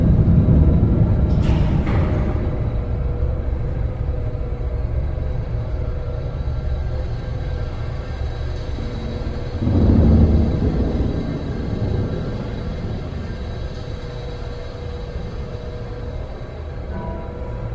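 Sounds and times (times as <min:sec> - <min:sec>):
bunker interior ambience: 0:00.0 - 0:17.7.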